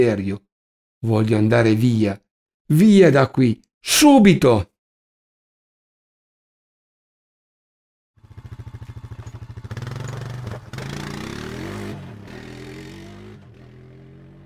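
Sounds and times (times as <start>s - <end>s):
speech: 0.0s - 4.7s
sputtering small motorbike passing through village lanes: 8.2s - 12.0s.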